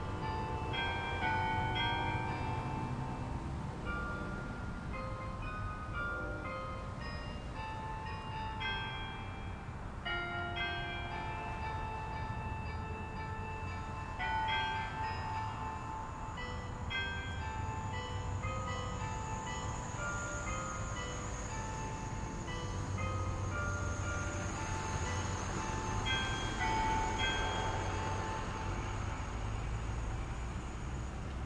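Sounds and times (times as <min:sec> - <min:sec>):
unusual Greek church bells ringing: 0:00.0 - 0:31.3.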